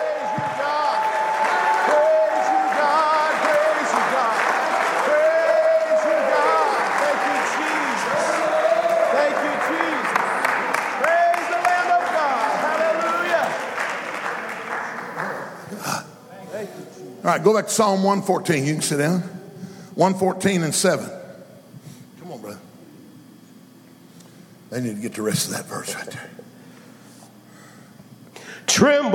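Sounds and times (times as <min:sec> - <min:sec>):
people shouting and cheering: 0:00.0 - 0:13.6
crowd clapping: 0:00.0 - 0:15.9
speech: 0:17.3 - 0:19.4, 0:20.0 - 0:21.2, 0:24.8 - 0:26.4, 0:28.8 - 0:29.1.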